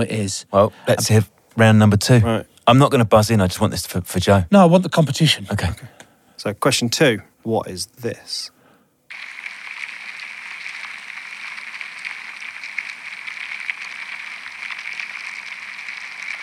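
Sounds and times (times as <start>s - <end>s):
speech: 0.0s - 9.3s
amplified ants: 9.1s - 16.4s.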